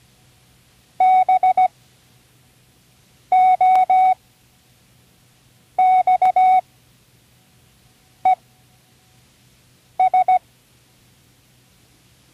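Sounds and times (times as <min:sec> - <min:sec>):
Morse code: 0:01.0 - 0:01.7, 0:03.3 - 0:04.2, 0:05.8 - 0:06.6, 0:10.0 - 0:10.4.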